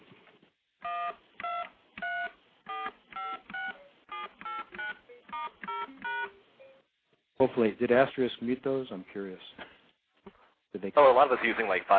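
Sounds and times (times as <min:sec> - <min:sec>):
standard DTMF touch tones: 0:00.8 - 0:06.9
speech: 0:07.4 - 0:09.7, 0:10.8 - 0:11.9.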